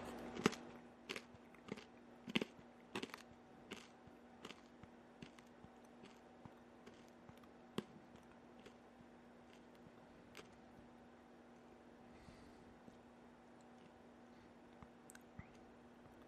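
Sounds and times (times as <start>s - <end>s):
hard candy crunching in ASMR chewing: 0.0s - 10.9s.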